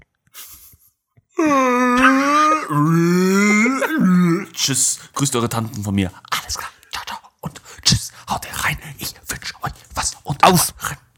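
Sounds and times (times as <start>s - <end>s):
voice imitating a Wookiee growl: 1.4s - 4.8s
speech: 4.6s - 6.7s, 10.5s - 10.8s.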